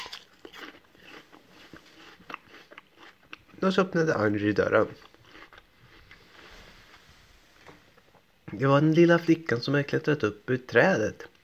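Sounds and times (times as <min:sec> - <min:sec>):
biting into an apple: 0:00.0 - 0:03.6
speech: 0:03.6 - 0:05.1, 0:08.6 - 0:11.3.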